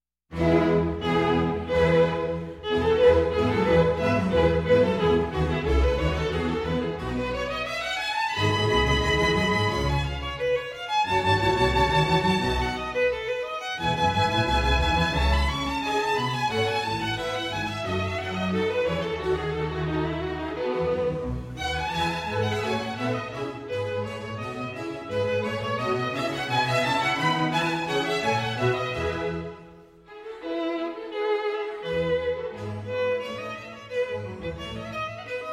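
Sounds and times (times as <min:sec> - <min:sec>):
violin concerto: 0:00.3 - 0:35.5.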